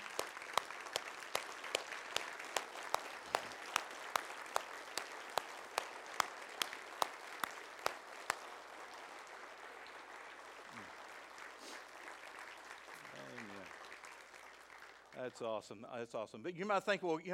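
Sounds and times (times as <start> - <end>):
audience applauding: 0.0 - 15.5
speech: 15.2 - 17.3.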